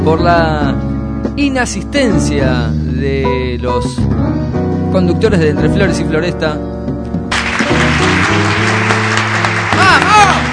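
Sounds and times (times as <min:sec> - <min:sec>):
speech: 0:00.0 - 0:07.1
applause: 0:07.3 - 0:10.5.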